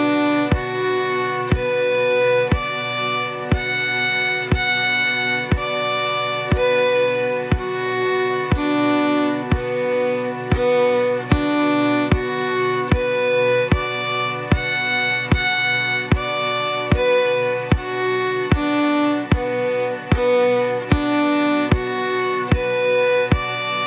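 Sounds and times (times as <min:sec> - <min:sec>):
fiddle playing B minor triads with single bows: 0:00.0 - 0:23.8.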